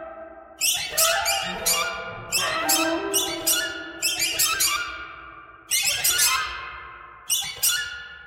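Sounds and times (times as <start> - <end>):
bird squawking: 0.6 - 5.0, 5.7 - 6.7, 7.3 - 8.1.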